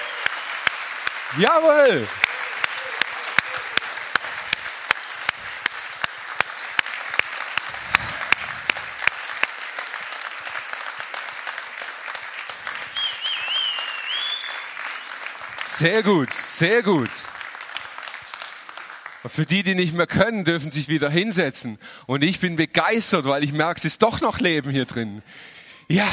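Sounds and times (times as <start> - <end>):
audience applause: 0.0 - 19.6
speech: 1.3 - 2.3, 15.8 - 17.3, 19.2 - 26.1.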